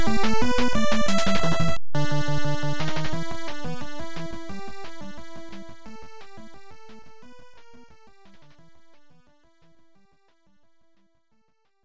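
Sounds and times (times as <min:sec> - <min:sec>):
battle music: 0:00.0 - 0:05.7.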